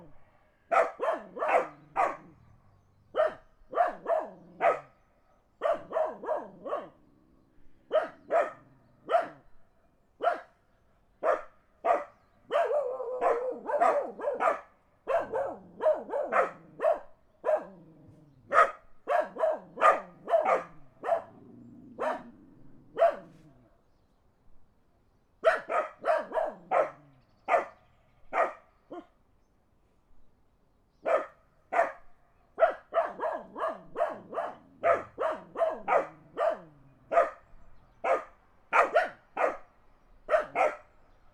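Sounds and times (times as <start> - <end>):
dogs barking in the country: 0.7 - 2.4, 3.1 - 5.0, 5.6 - 7.0, 7.9 - 9.4, 10.2 - 10.5, 11.2 - 23.6, 25.4 - 29.1, 31.0 - 32.0, 32.6 - 37.4, 38.0 - 39.7, 40.3 - 41.3.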